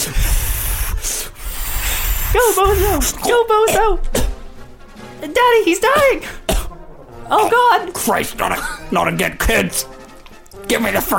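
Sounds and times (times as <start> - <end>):
speech: 0.0 - 0.4, 2.3 - 4.2, 5.2 - 6.4, 7.3 - 9.9, 10.6 - 11.1
balloon being twisted into an animal, rubbery rubbing and squeaking: 0.0 - 3.5.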